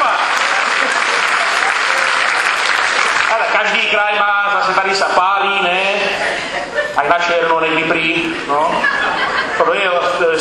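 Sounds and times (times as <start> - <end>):
laughter: 0.0 - 3.5, 5.8 - 10.3
audience applauding at a live folk entertainment show: 0.0 - 4.0
speech: 3.7 - 10.3.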